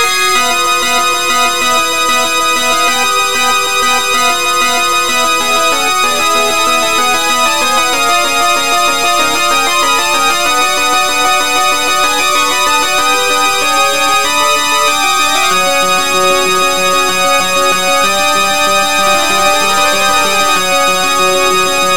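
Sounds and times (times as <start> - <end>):
battle music remix with sawtooth lead: 0.1 - 21.9.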